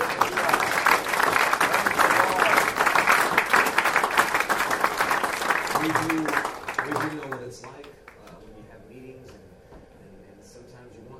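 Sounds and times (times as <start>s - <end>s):
church audience clapping: 0.0s - 8.4s.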